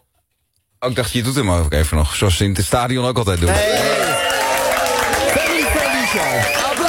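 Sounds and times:
speech: 0.8s - 4.1s
applause: 3.3s - 6.8s.

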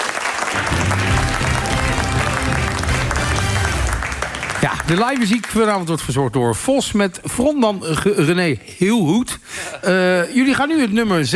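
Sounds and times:
audience applause: 0.0s - 5.9s
speech: 4.9s - 11.3s.

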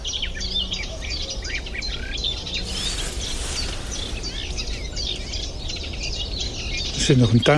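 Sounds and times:
Cetti's warbler singing in a marsh: 0.0s - 7.5s
steady hiss: 2.2s - 7.5s.

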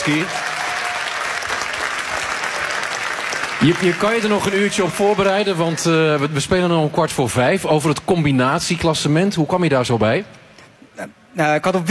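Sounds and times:
speech: 0.0s - 0.4s, 3.6s - 10.4s, 11.0s - 11.9s
audience applause: 0.0s - 6.4s.

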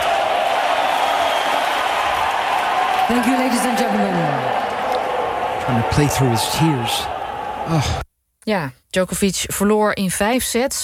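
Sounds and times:
tennis crowd cheering on Novak Djokovic: 0.0s - 8.0s
speech: 3.1s - 4.6s, 5.7s - 10.8s.

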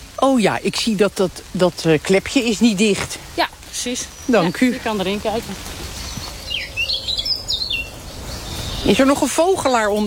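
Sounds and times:
speech: 0.2s - 5.8s, 8.8s - 10.0s
blackcap song: 3.8s - 10.0s.

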